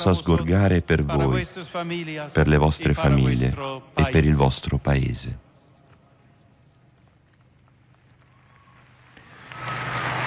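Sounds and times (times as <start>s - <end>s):
speech: 0.0s - 5.4s
joyful applause from crowd in square: 8.2s - 10.2s.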